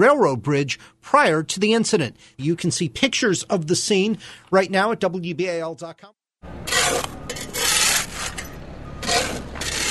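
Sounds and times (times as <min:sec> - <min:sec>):
speech: 0:00.0 - 0:07.2
shovels moving dirt and rocks: 0:06.6 - 0:09.8.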